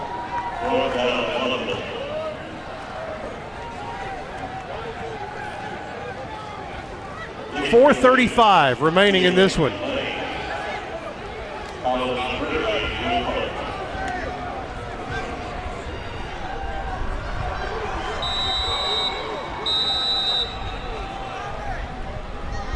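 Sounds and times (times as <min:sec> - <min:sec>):
crowd roar at a football game: 0:00.0 - 0:08.4, 0:09.0 - 0:22.7
murmuring voices: 0:00.0 - 0:22.7
speech: 0:00.6 - 0:01.1, 0:07.7 - 0:09.9
referee's whistle blasts at a football game: 0:18.2 - 0:21.0.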